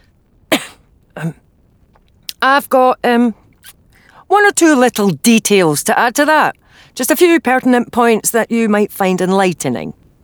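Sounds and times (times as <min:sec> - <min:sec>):
doctor giving a polite cough: 0:00.5 - 0:01.4
speech: 0:01.2 - 0:01.4, 0:02.4 - 0:03.4, 0:04.3 - 0:10.0.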